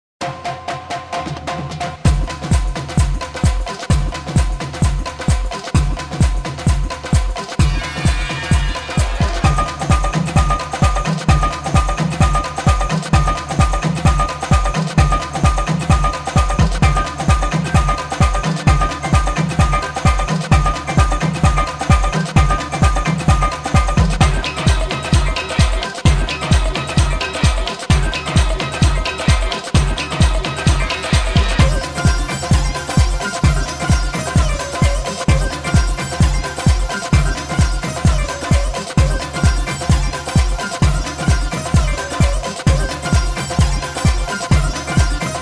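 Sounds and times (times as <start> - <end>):
contemporary urban pop music: 0.3 - 45.3.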